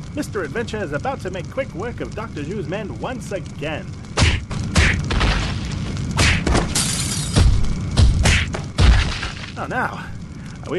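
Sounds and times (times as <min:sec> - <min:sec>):
rumbling grinding din: 0:00.0 - 0:10.7
speech: 0:00.2 - 0:04.0, 0:09.6 - 0:10.7
statue foundation smashing and breaking, audio drama effect: 0:04.2 - 0:09.6.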